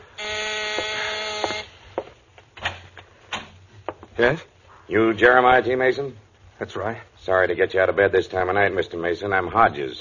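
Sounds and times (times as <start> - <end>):
door buzzer at midnight: 0.1 - 1.8
speech: 4.2 - 9.9.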